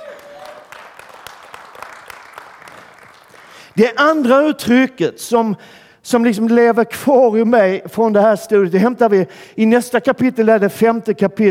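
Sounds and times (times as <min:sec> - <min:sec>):
audience applause: 0:00.0 - 0:03.8
speech: 0:03.8 - 0:11.4.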